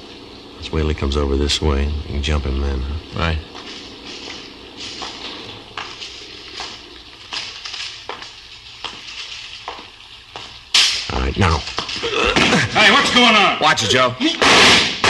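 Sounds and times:
steady rain hissing: 0:00.0 - 0:15.0
speech: 0:00.6 - 0:03.7, 0:13.2 - 0:14.9
irregular soft splashes and patters: 0:03.2 - 0:12.7.

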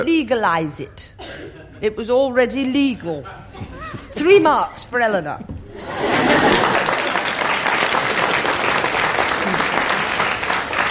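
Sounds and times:
speech: 0:00.0 - 0:06.8
laughter: 0:05.7 - 0:07.4
studio audience applause on a comedy quiz panel show: 0:06.3 - 0:10.9.

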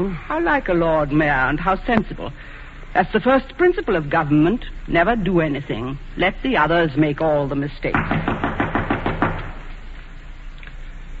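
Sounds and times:
speech: 0:00.0 - 0:08.4
firm knocking on a door: 0:07.9 - 0:09.7.

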